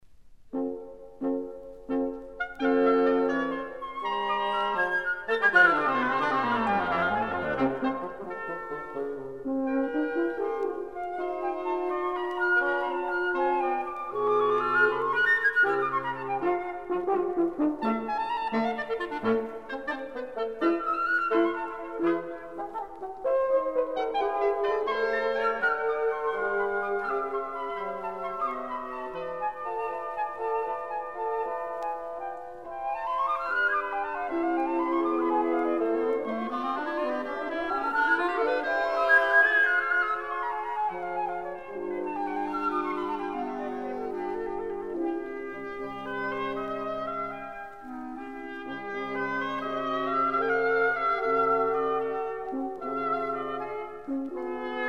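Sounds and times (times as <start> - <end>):
wind quintet: 0.5 - 54.8.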